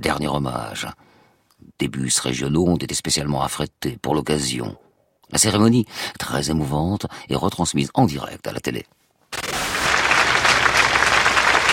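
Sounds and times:
speech: 0.1s - 9.4s
crowd applauding at a funeral ceremony: 9.4s - 11.7s.

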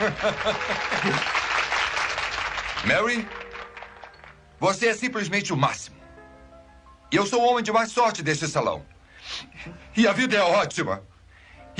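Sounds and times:
people chuckling: 0.0s - 1.5s
crowd clapping: 0.0s - 4.9s
speech: 0.1s - 1.4s, 2.8s - 3.4s, 4.6s - 6.0s, 7.1s - 11.1s.

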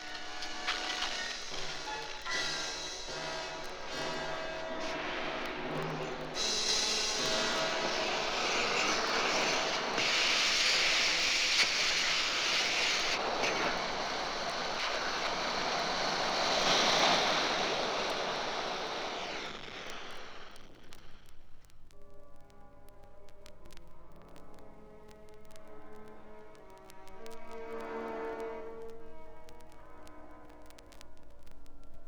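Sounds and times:
rocket launch roar: 0.0s - 21.2s.

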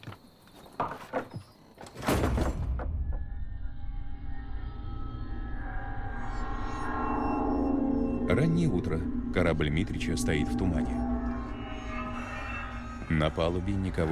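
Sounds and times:
knocks and bumps: 0.0s - 3.2s
door being closed by a man: 0.8s - 3.2s
steady low rumbling background: 2.6s - 14.1s
speech: 8.4s - 11.1s, 13.1s - 14.1s.

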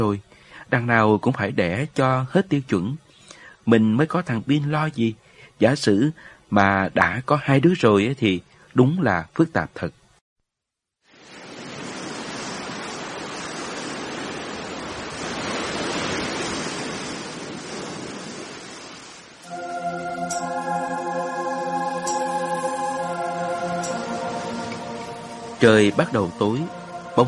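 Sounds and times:
speech: 0.0s - 3.0s, 3.6s - 10.0s, 25.6s - 27.2s
ocean waves washing onto the shore of a small island at nightfall: 11.1s - 27.2s
sustained musical chord: 19.4s - 27.2s.

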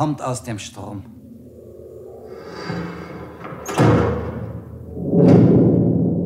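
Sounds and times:
speech: 0.0s - 1.2s
heavy house gate slamming shut: 2.4s - 6.1s.

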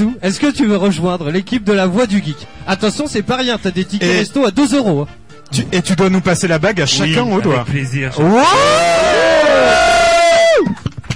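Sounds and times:
speech: 0.0s - 9.0s
crowd applause: 8.2s - 11.1s.

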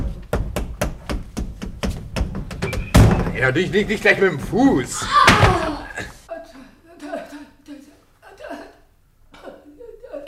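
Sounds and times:
knocking on wardrobe back wall: 0.0s - 3.4s
speech: 3.4s - 6.1s.

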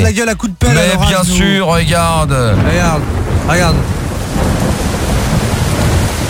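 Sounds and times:
speech: 0.1s - 4.9s
thunder: 1.9s - 6.2s
rain: 2.5s - 6.2s.

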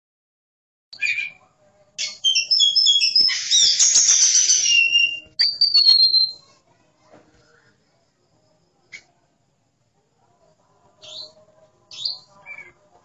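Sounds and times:
Oriental magpie-robin pouring out fast varied chattering song: 2.0s - 6.4s.

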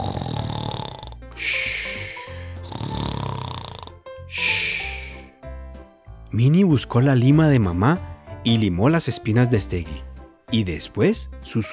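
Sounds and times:
loud snoring: 0.0s - 5.2s
speech: 6.4s - 11.7s.

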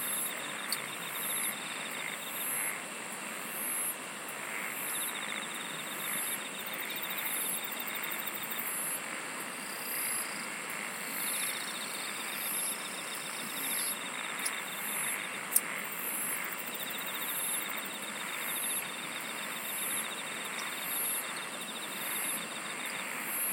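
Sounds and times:
insects pulsed trills: 0.0s - 2.8s, 3.4s - 9.0s, 9.6s - 23.5s.

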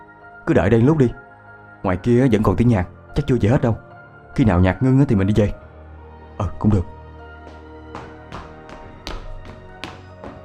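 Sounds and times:
speech: 0.5s - 1.2s, 1.8s - 3.8s, 4.4s - 5.6s, 6.4s - 7.0s
clattering footsteps on stairs: 7.4s - 10.4s.

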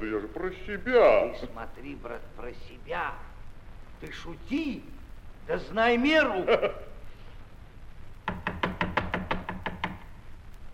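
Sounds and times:
speech: 0.1s - 3.3s, 4.0s - 6.9s
knocking on a wooden door: 8.3s - 10.1s.

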